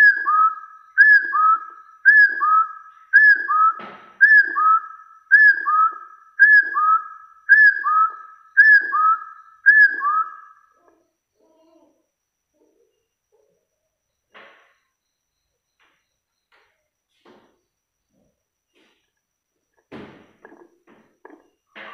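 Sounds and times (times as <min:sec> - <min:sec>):
Hill partridge whistling call: 0:00.0 - 0:10.8.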